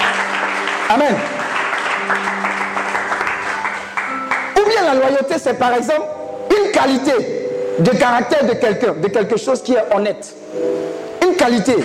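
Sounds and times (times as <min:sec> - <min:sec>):
church congregation applauding: 0:00.0 - 0:05.2
speech: 0:00.9 - 0:01.4, 0:02.1 - 0:02.4, 0:04.8 - 0:06.2, 0:06.8 - 0:11.8.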